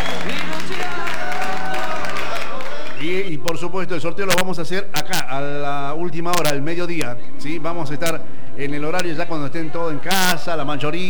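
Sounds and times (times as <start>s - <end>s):
applause and cheering: 0.0s - 3.2s
speech: 3.6s - 11.0s.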